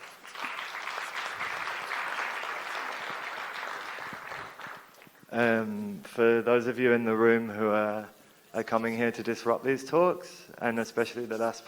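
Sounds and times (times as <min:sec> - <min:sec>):
audience applause: 0:00.0 - 0:05.2
speech: 0:05.3 - 0:11.6.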